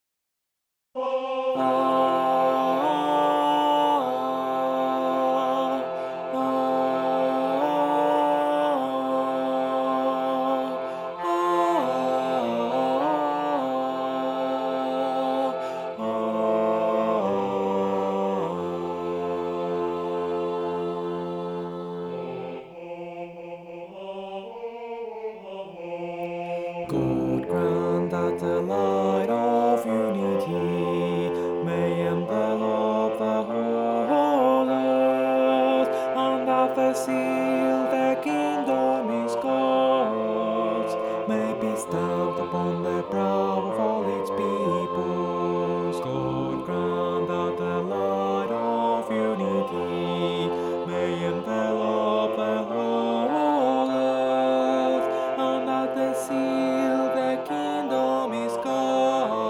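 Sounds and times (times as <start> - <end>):
tenor singing: 1.0 - 59.4.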